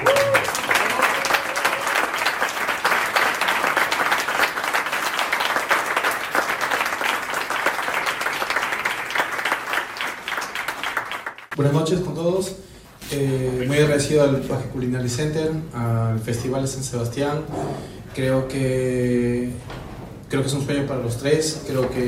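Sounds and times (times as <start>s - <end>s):
audience applause: 0.0s - 11.6s
speech: 11.6s - 22.0s.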